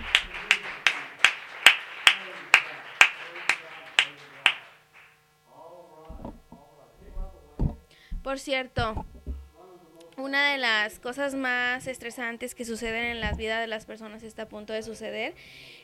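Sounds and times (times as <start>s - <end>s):
audience applause: 0.0s - 5.2s
speech: 8.3s - 9.1s, 10.2s - 15.8s.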